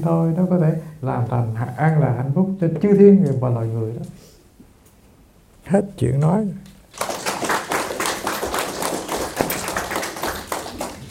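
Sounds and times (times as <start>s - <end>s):
speech: 0.0s - 4.3s, 5.7s - 7.1s
audience applause at a Buddhist dharma talk: 6.9s - 11.0s.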